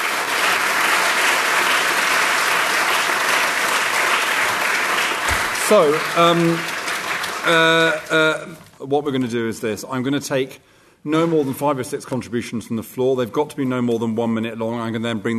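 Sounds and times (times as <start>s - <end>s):
audience clapping for a panel: 0.0s - 8.7s
speech: 5.7s - 6.7s, 7.4s - 15.3s.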